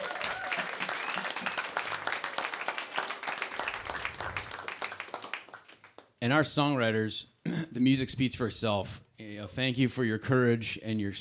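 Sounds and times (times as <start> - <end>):
audience applause: 0.0 - 6.1
speech: 6.2 - 11.1.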